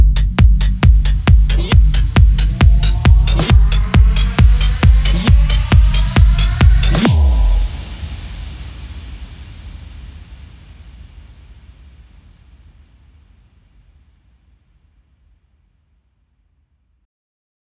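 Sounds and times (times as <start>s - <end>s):
techno music: 0.0s - 7.6s.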